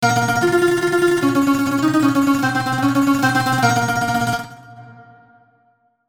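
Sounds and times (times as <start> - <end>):
game over jingle: 0.0 - 4.6.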